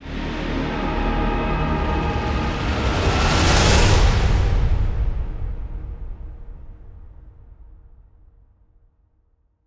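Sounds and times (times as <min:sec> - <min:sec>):
musical stinger: 0:00.0 - 0:05.0.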